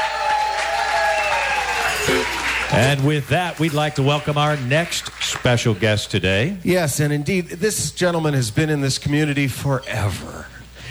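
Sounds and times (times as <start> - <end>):
live audience applause: 0.0 - 5.8
speech: 2.1 - 10.8.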